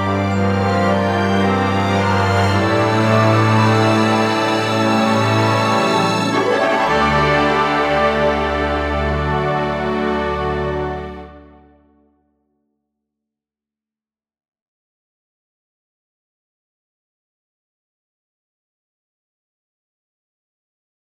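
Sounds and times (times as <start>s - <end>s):
jig music: 0.0s - 11.8s.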